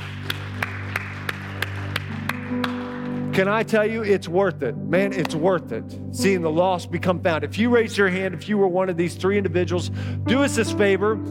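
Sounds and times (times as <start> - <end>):
steady clapping: 0.0 - 3.4
speech: 3.4 - 11.2.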